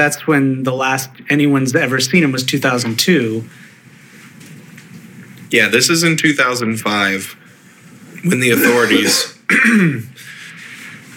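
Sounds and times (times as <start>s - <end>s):
speech: 0.0s - 3.7s, 5.5s - 7.4s, 8.2s - 10.3s
person coughing: 8.6s - 10.2s
throat clearing: 8.6s - 10.2s.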